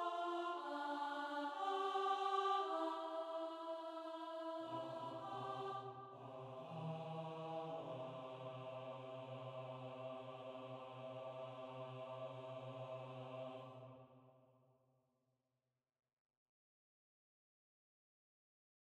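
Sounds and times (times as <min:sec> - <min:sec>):
choir singing: 0:00.0 - 0:14.3.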